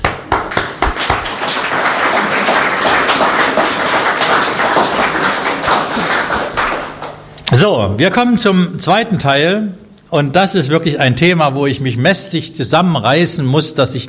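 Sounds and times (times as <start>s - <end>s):
applause: 0.0s - 7.4s
speech: 7.6s - 14.0s.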